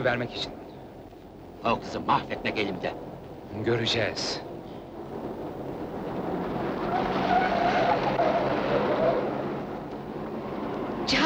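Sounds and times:
speech: 0:00.0 - 0:00.6, 0:01.6 - 0:04.5
car speeding: 0:04.0 - 0:11.2
car skidding: 0:05.0 - 0:11.1.

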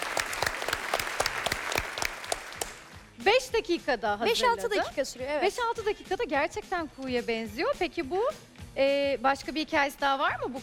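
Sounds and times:
small group clapping: 0:00.0 - 0:03.1
speech: 0:03.3 - 0:10.6.

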